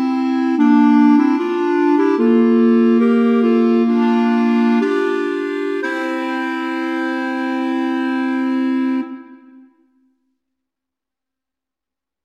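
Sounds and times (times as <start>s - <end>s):
clarinet trio playing: 0.0s - 9.7s.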